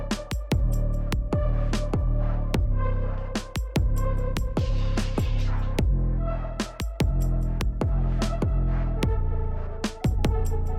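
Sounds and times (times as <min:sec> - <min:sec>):
music beat: 0:00.1 - 0:02.8, 0:03.4 - 0:06.0, 0:06.6 - 0:09.1, 0:09.9 - 0:10.7.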